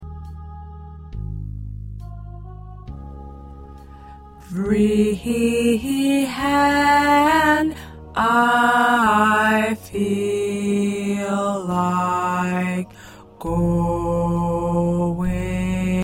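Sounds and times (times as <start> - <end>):
tenor singing: 4.3 - 16.0.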